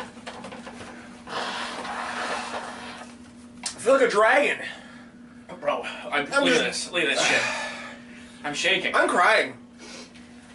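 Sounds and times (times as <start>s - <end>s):
person blowing nose: 1.3s - 3.1s
speech: 3.8s - 4.8s, 5.8s - 7.6s, 8.4s - 9.6s.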